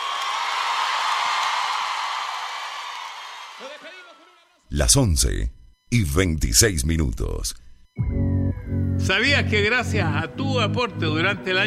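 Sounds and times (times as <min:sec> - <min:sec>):
audience applause: 0:00.0 - 0:04.3
speech: 0:03.6 - 0:04.1, 0:04.7 - 0:08.1, 0:09.0 - 0:11.6.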